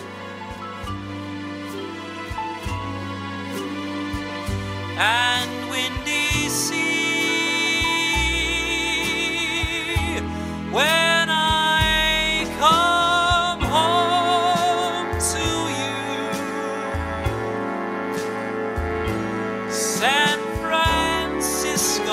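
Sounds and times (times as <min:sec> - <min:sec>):
backing track music: 0:00.0 - 0:22.1
jazz singer singing: 0:04.4 - 0:22.1.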